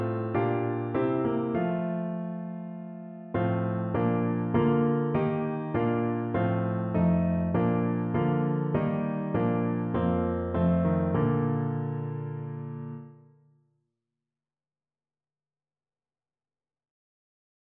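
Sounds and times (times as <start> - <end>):
hymn played on piano: 0.0 - 13.2.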